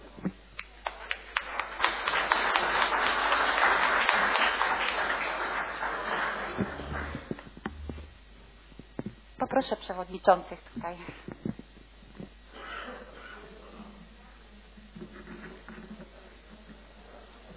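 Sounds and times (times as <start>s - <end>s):
group clapping: 0.6s - 8.1s
speech: 9.6s - 11.3s.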